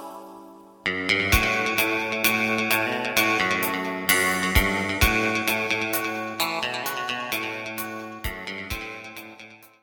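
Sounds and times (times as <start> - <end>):
bass: 0.9 - 9.7.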